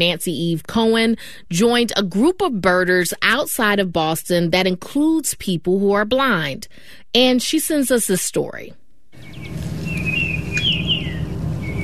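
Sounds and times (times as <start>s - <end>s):
speech: 0.0s - 9.6s
Baltimore oriole song: 9.2s - 11.8s
steady low rumble of background noise: 9.2s - 11.8s.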